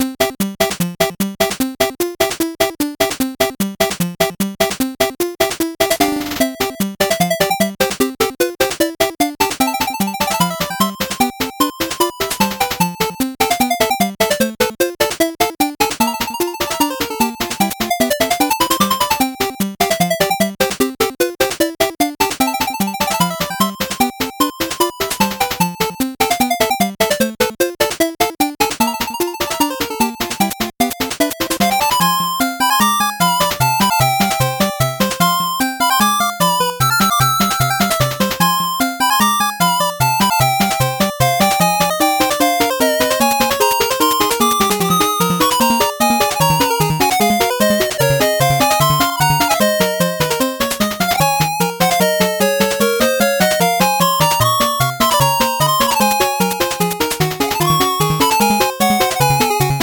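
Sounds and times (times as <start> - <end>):
8-bit background music: 0.0 - 59.8.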